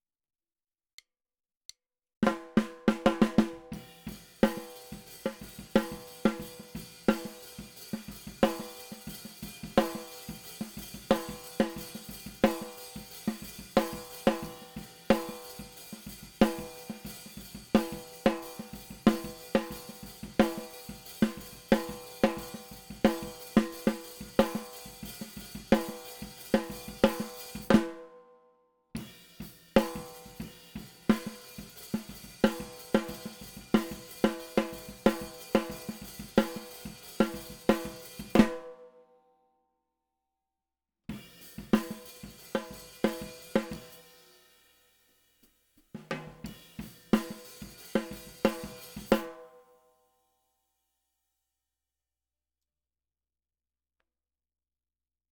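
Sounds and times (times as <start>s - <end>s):
snare drum: 2.2s - 28.1s, 29.0s - 38.7s, 41.1s - 44.3s, 46.0s - 49.5s.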